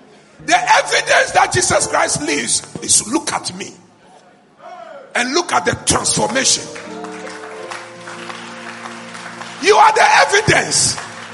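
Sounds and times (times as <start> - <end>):
speech: 0.4 - 3.8, 5.2 - 6.9, 9.6 - 11.1
audience clapping: 5.9 - 11.3.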